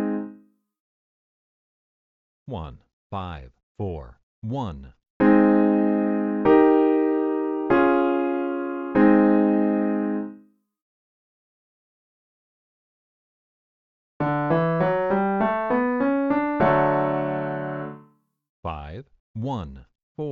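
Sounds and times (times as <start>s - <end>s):
easy I IV V chord progression: 0.0s - 0.4s, 5.2s - 10.4s, 14.2s - 18.1s.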